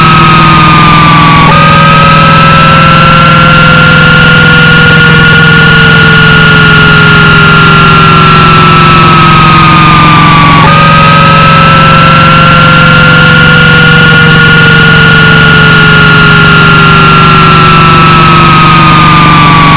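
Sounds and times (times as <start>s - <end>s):
loud noise: 0.0s - 19.7s.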